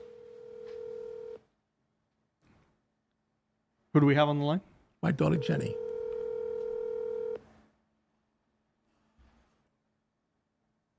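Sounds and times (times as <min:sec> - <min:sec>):
telephone dialing tone: 0:00.0 - 0:01.4, 0:05.3 - 0:07.4
speech: 0:03.9 - 0:05.8.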